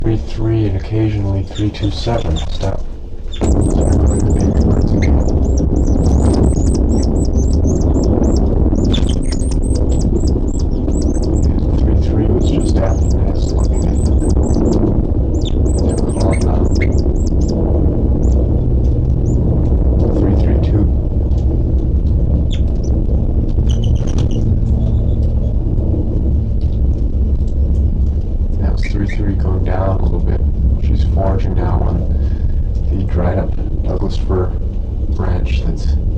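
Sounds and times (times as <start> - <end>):
low rumbling background: 0.0 - 36.1
speech: 0.1 - 2.9
bird calls, rapid high-pitched chirps: 3.3 - 11.8, 12.4 - 17.6, 18.2 - 18.4, 22.5 - 22.9, 23.6 - 25.3.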